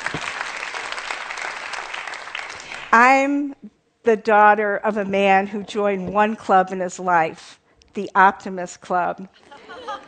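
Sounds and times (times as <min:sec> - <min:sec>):
audience applause: 0:00.0 - 0:03.0
speech: 0:02.9 - 0:10.0
laughter: 0:09.4 - 0:10.0.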